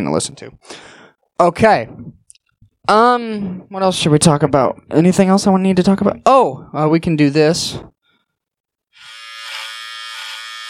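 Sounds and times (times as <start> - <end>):
speech: 0.0 - 2.2, 2.8 - 7.9
electric hair clippers buzzing: 9.0 - 10.6.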